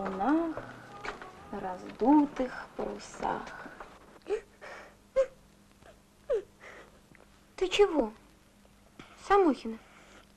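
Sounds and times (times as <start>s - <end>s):
speech: 1.6s - 4.4s, 7.6s - 8.2s, 9.3s - 9.9s
woman crying: 4.2s - 6.9s.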